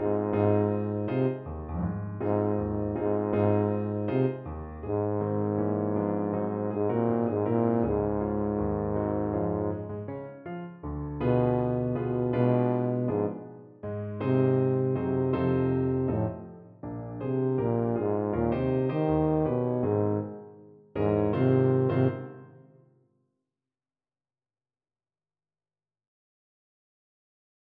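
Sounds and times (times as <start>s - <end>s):
tuba playing a jazz tune: 0.0s - 10.1s, 11.2s - 16.5s, 17.2s - 20.4s, 21.0s - 22.3s.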